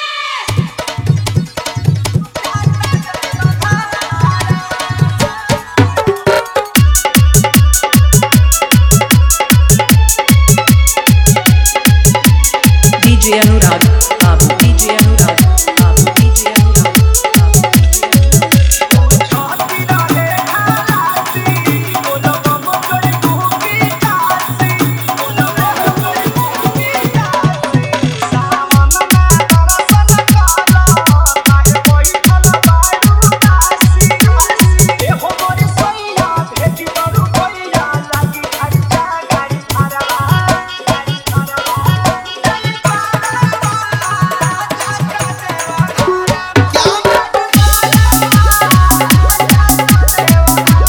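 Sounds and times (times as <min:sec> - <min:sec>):
dholak bass dance mix: 0:00.4 - 0:50.8.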